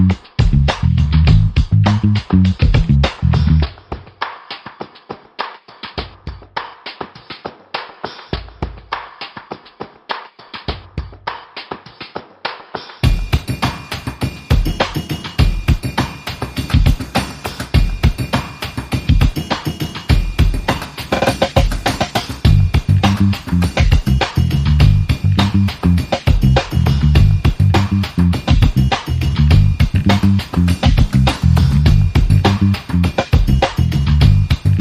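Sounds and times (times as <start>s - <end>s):
funk bass: 0.0s - 3.7s, 21.5s - 34.7s
funk drums: 0.0s - 34.7s.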